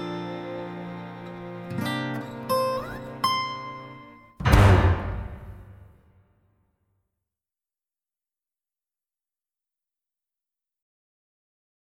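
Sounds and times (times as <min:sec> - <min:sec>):
instrumental music: 0:00.0 - 0:05.9.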